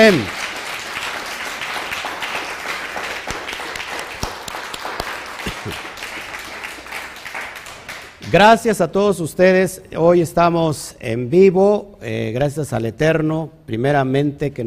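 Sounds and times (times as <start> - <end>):
speech: 0.0 - 0.4, 8.3 - 14.6
audience applause: 0.0 - 8.4.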